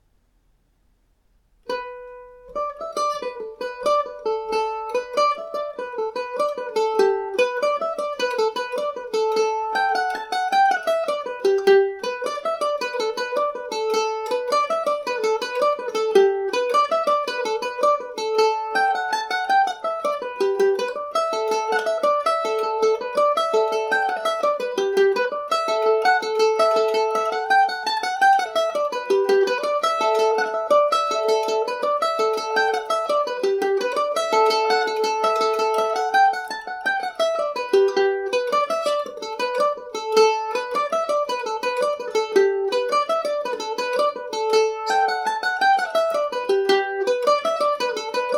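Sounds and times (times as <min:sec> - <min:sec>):
march in G major on Irish mandolin: 0:01.0 - 0:48.3.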